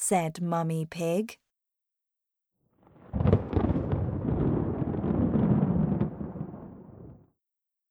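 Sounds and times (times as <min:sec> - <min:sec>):
speech: 0:00.1 - 0:01.4
thunderstorm thunder roll: 0:02.8 - 0:07.3.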